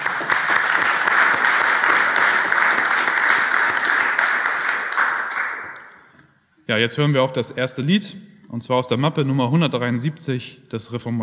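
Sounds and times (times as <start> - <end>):
audience clapping: 0.0 - 6.1
speech: 6.7 - 11.2.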